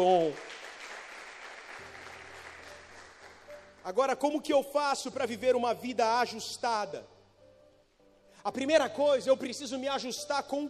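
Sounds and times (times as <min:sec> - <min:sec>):
speech: 0:00.0 - 0:00.5, 0:03.9 - 0:07.1, 0:08.4 - 0:10.6
audience applauding: 0:00.0 - 0:03.8.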